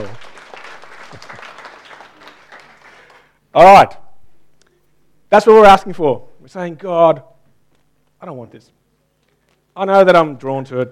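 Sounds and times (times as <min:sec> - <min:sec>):
audience clapping: 0:00.0 - 0:03.4
speech: 0:03.6 - 0:04.0, 0:05.3 - 0:07.3, 0:08.2 - 0:08.8, 0:09.8 - 0:10.9.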